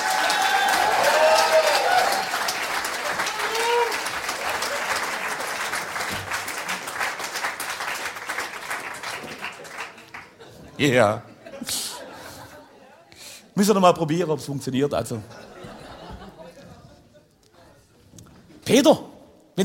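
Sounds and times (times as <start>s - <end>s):
audience applause: 0.0s - 10.5s
laughter: 9.6s - 13.1s, 15.2s - 17.3s
speech: 10.8s - 11.8s, 13.6s - 15.4s, 18.7s - 19.6s.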